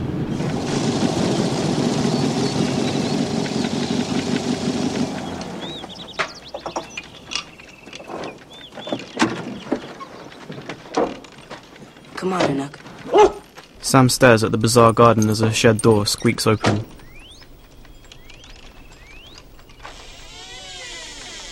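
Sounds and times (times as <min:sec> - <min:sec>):
car driving along a track in grassy hills: 0:00.0 - 0:07.3
speech: 0:12.3 - 0:12.8, 0:13.9 - 0:17.0.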